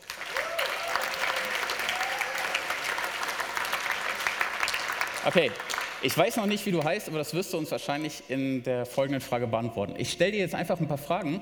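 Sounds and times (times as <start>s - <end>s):
audience applause for a volunteer: 0.0s - 6.9s
speech: 5.2s - 11.4s.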